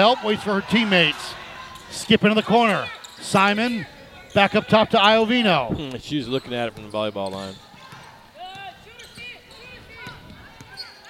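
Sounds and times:
speech: 0:00.0 - 0:07.7
sneakers squeaking on floor: 0:01.6 - 0:11.0
basketball dribbled on court during a women's game: 0:06.7 - 0:10.8.

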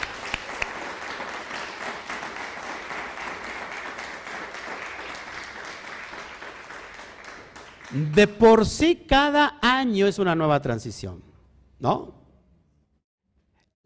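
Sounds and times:
crowd applause: 0:00.0 - 0:08.4
speech: 0:07.9 - 0:12.2.

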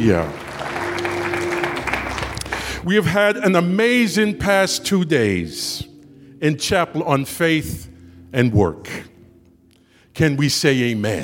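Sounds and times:
speech: 0:00.0 - 0:00.4, 0:02.8 - 0:05.8, 0:06.4 - 0:09.1, 0:10.2 - 0:11.2
audience clapping hands: 0:00.0 - 0:02.9.

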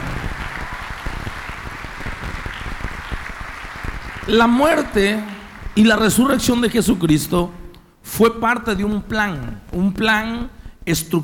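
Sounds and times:
audience applause: 0:00.0 - 0:06.9
speech: 0:04.3 - 0:11.2.

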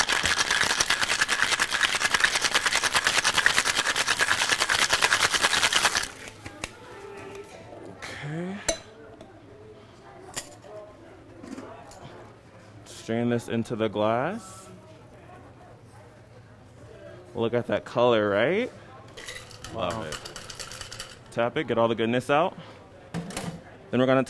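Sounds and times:
cocktail shaker with gin, lime juice and syrup being shaken: 0:00.0 - 0:06.3, 0:19.3 - 0:21.2
speech: 0:13.1 - 0:14.6, 0:17.4 - 0:18.8, 0:21.4 - 0:22.7, 0:23.9 - 0:24.2.

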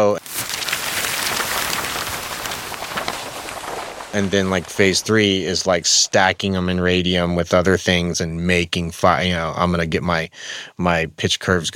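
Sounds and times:
paper rustling against a microphone: 0:00.0 - 0:05.8
speech: 0:04.1 - 0:11.7.

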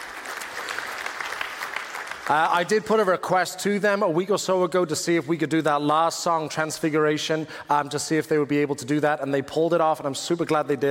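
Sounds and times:
audience clapping for worship team: 0:00.0 - 0:03.0
speech: 0:02.3 - 0:10.8.

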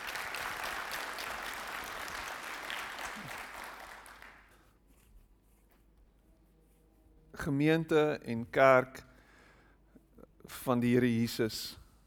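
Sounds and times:
audience applause: 0:00.0 - 0:04.5
speech: 0:07.4 - 0:09.1, 0:10.6 - 0:11.8.

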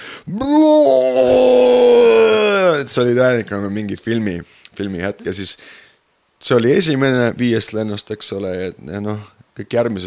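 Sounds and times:
speech: 0:00.2 - 0:01.6, 0:02.9 - 0:10.0
man imitating his own pained scream: 0:00.3 - 0:02.9.

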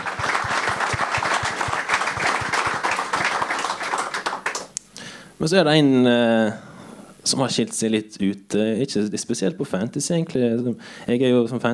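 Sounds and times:
audience applause: 0:00.0 - 0:04.7
speech: 0:05.4 - 0:11.7.

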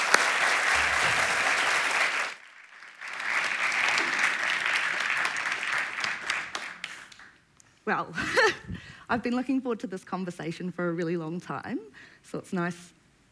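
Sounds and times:
audience applause: 0:00.0 - 0:07.2
speech: 0:07.9 - 0:13.0.

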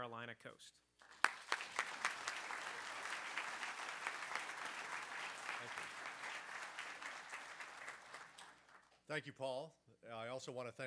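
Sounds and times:
speech: 0:00.1 - 0:00.9, 0:05.6 - 0:06.3, 0:09.1 - 0:10.8
audience applause welcoming a speaker at the Virginia Historical Society: 0:01.0 - 0:09.0.

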